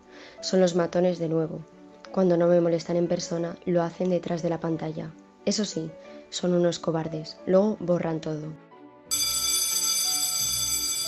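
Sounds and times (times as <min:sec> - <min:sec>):
speech: 0:00.4 - 0:08.7
school bell ringing: 0:09.1 - 0:11.0.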